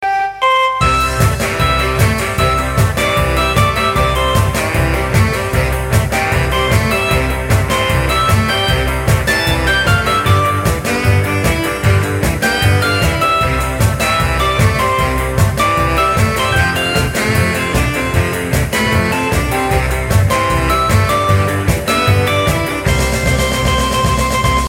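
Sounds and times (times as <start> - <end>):
rock music: 0.3 - 24.6.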